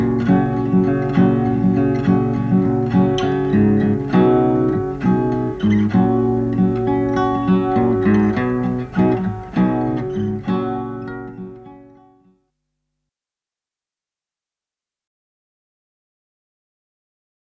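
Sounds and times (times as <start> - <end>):
guitar instrumental: 0.0 - 12.3.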